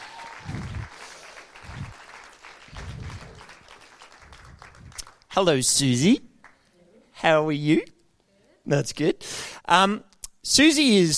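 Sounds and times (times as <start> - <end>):
audience applause welcoming a woman to the stage: 0.0 - 5.3, 6.4 - 6.6
speech: 5.4 - 6.3, 7.2 - 7.9, 8.7 - 11.1.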